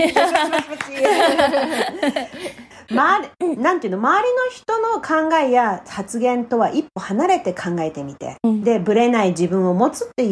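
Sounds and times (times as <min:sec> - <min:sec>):
laughter: 0:00.0 - 0:02.7
speech: 0:00.0 - 0:10.3
hands clapping: 0:00.2 - 0:01.4.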